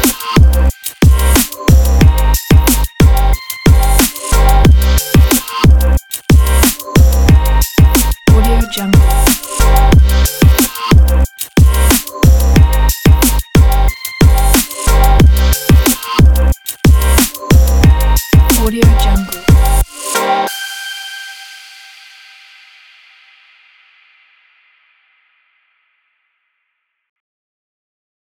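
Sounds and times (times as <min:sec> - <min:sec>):
abstract future beat: 0:00.0 - 0:20.4.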